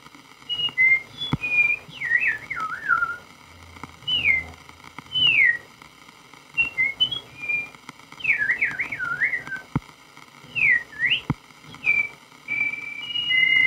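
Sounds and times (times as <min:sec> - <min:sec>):
person whistling imitation of a meadowlark song: 0:00.5 - 0:03.2, 0:04.0 - 0:04.5, 0:05.1 - 0:05.7, 0:06.6 - 0:09.7, 0:10.5 - 0:13.6.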